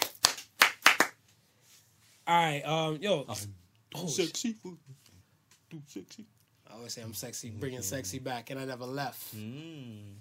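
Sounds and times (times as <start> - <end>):
hands clapping: 0.0 - 1.2
speech: 2.3 - 5.1, 5.7 - 10.2.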